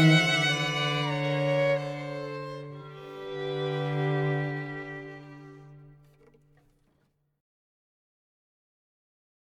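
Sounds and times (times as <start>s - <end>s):
jazz string quartet: 0.0s - 6.9s.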